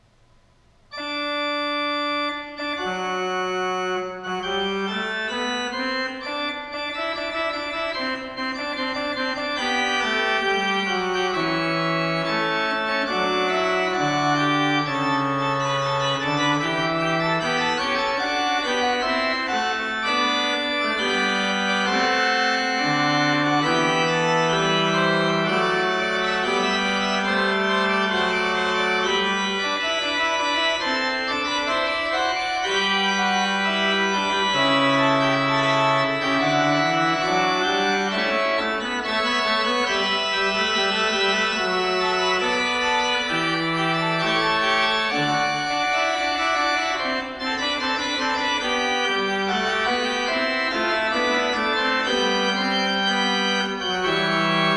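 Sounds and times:
organ fugue: 0:00.8 - 0:54.7.

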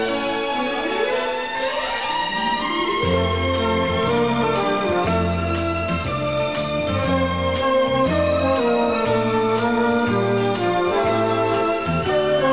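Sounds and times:
string orchestra: 0:00.0 - 0:12.5.

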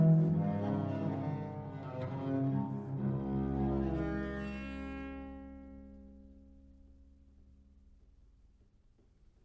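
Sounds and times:
viol gavotte in D minor: 0:00.0 - 0:06.4.

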